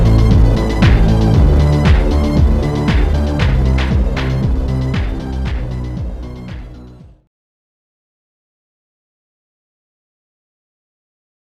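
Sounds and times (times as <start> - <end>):
slowed music with reverb: 0.0 - 7.2.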